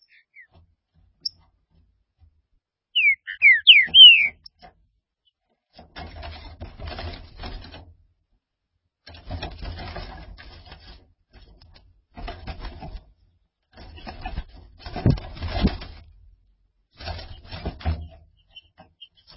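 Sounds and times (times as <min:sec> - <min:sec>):
green-winged saltator whistled song: 0:03.0 - 0:04.5.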